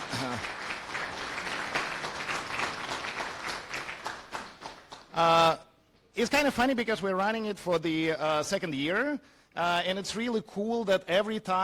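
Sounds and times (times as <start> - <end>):
crowd applauding: 0.0 - 5.1
speech: 5.2 - 5.6, 6.2 - 11.6.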